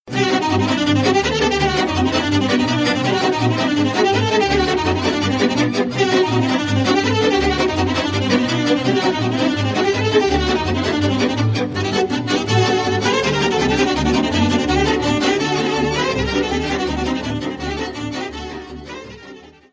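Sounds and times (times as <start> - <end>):
Romanian folk dance music: 0.1 - 19.7.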